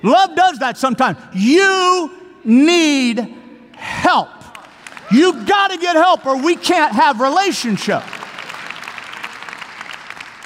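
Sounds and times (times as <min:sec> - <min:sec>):
speech: 0:00.0 - 0:04.4, 0:05.1 - 0:08.2
audience applause during a sermon: 0:04.4 - 0:10.4.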